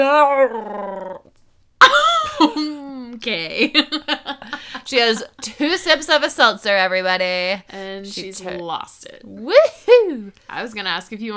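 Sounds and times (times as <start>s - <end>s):
speech: 0.0s - 1.1s, 3.2s - 11.3s
small dog growling whine: 0.0s - 1.3s.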